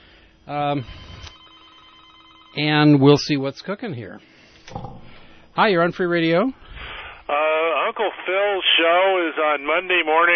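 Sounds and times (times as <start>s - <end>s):
speech: 0.5s - 1.1s, 2.6s - 10.3s
telephone ring of a caller to a community FM radio call-in show: 0.9s - 3.0s.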